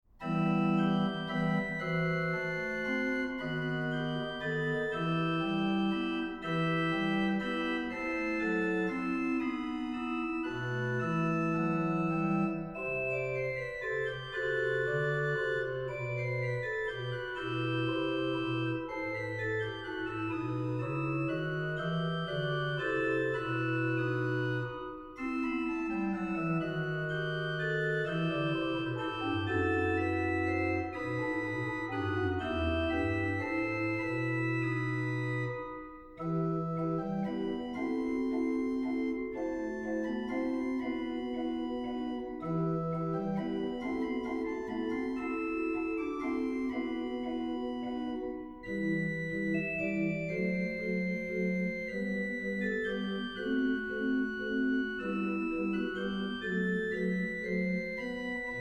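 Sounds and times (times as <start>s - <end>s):
organist playing a praeludium in E minor: 0.1s - 58.5s.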